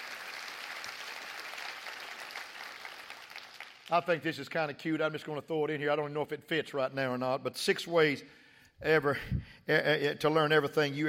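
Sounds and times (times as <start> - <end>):
audience clapping hands: 0.0 - 4.2
speech: 3.9 - 11.0.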